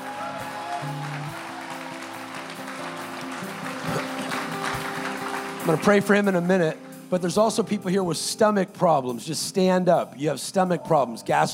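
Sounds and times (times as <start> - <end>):
crowd clapping and shouting: 0.0 - 7.0
speech: 0.8 - 1.1, 5.7 - 11.5.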